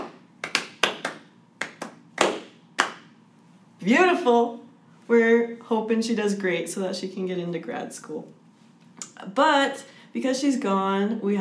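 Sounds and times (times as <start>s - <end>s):
soft slow clapping: 0.0s - 3.1s
speech: 3.8s - 8.4s, 9.2s - 11.3s.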